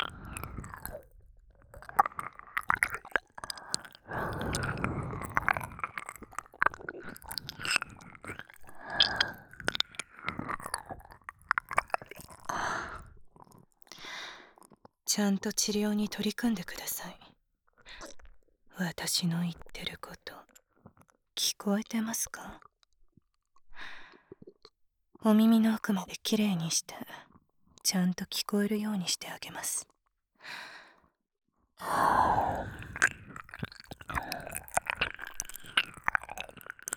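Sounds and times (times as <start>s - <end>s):
ear licking: 0.0s - 13.0s, 31.9s - 36.9s
nurse speaking in a low cool voice: 15.1s - 17.4s, 18.7s - 20.6s, 21.4s - 22.7s, 25.2s - 30.0s.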